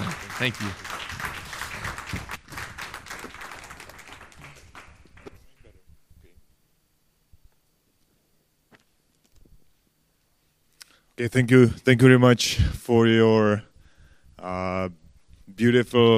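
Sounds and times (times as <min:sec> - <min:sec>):
audience applauding: 0:00.0 - 0:05.6
speech: 0:00.4 - 0:00.8, 0:11.2 - 0:13.7, 0:14.4 - 0:16.1.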